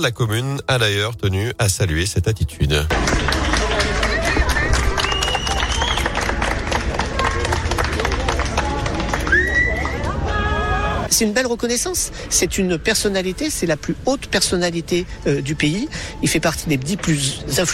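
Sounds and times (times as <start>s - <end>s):
speech: 0.0s - 3.7s, 11.2s - 17.7s
crowd applauding: 2.9s - 10.7s.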